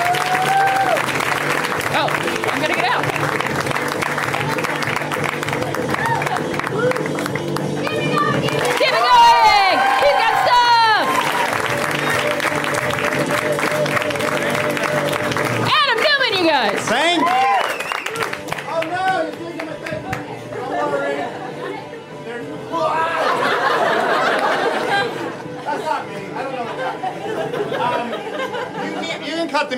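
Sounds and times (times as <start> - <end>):
audience applause for a comedian: 0.0 - 20.3
laughter: 20.5 - 22.1, 22.8 - 29.6.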